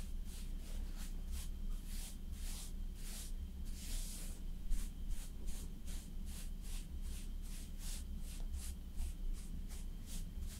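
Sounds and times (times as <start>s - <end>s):
soft brushing strokes of makeup being applied: 0.0s - 10.5s.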